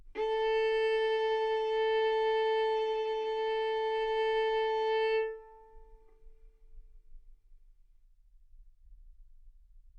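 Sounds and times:
violin bowed arco notes: 0.0s - 6.5s.

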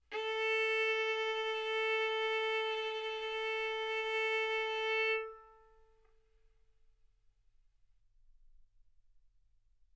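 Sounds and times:
violin bowed arco notes: 0.0s - 5.9s.

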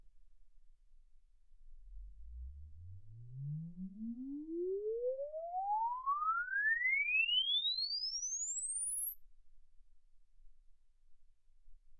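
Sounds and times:
exponential sine sweep from 10 Hz to 24 kHz: 1.8s - 9.9s.

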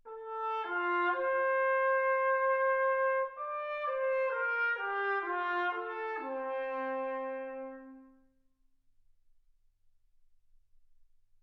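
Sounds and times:
trumpet: 0.0s - 8.4s.

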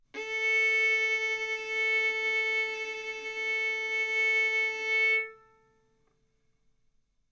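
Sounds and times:
violin arco on A string: 0.2s - 5.9s.

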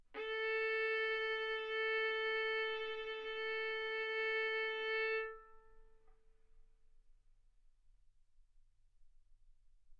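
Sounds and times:
violin bowed mezzo-forte on the A string, A4 and B4: 0.2s - 5.7s.

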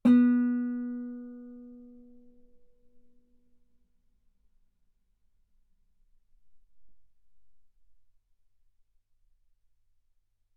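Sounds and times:
guitar note B3: 0.0s - 2.2s.

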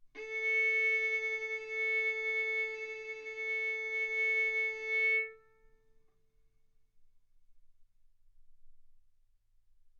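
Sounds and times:
violin bowed mezzo-forte on the A string, A4 and B4: 0.2s - 5.6s.

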